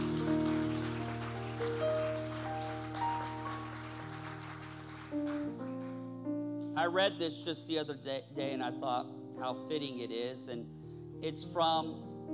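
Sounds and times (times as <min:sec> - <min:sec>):
audience applause hand clapping: 0:00.0 - 0:06.1
speech: 0:06.8 - 0:12.1.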